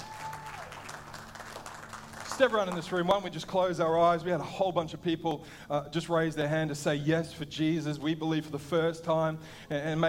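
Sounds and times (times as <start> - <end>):
audience hand clapping: 0.0 - 3.2
speech: 2.4 - 10.0.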